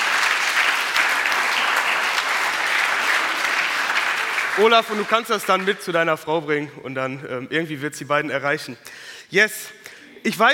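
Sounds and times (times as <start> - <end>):
audience applause: 0.0 - 6.0
speech: 4.6 - 10.5.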